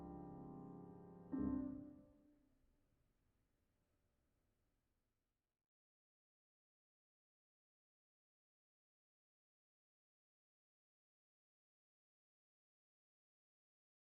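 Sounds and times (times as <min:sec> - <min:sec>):
piano: 0:00.0 - 0:02.2.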